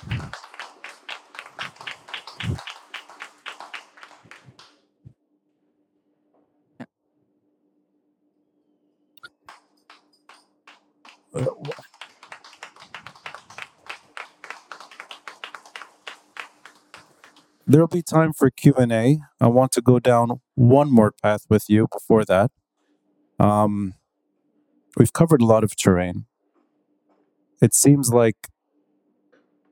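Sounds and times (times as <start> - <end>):
audience applause: 0.0 - 4.8, 10.7 - 18.2
speech: 17.7 - 22.6, 23.4 - 24.0, 25.0 - 26.3, 27.6 - 28.5.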